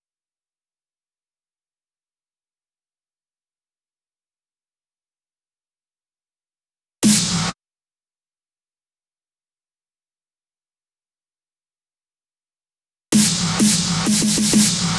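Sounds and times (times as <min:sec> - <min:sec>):
big snare drum loop at 128 BPM: 0:07.0 - 0:07.5, 0:13.2 - 0:14.9.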